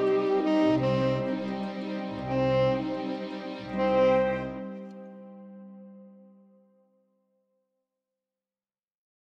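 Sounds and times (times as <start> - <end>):
tenor saxophone performance: 0.0 - 6.5.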